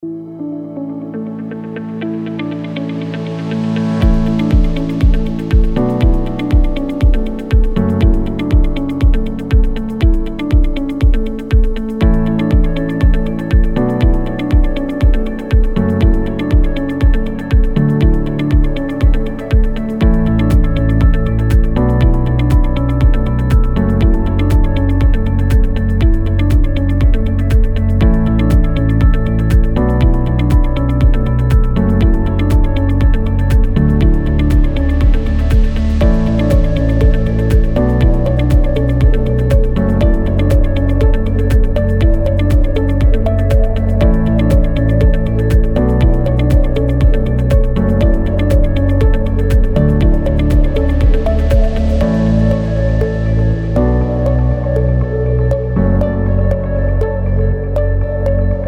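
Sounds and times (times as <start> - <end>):
background music: 0.0 - 58.6.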